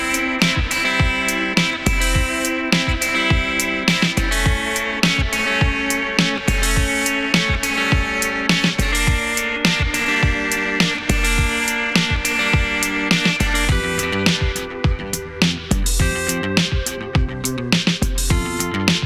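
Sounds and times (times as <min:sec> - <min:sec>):
drums: 0:00.0 - 0:19.0.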